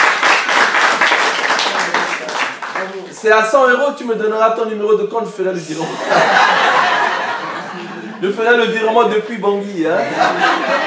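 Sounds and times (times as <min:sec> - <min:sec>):
church congregation applauding a person: 0:00.0 - 0:03.4
speech: 0:03.2 - 0:06.4, 0:08.2 - 0:10.8
laughter: 0:05.6 - 0:10.8.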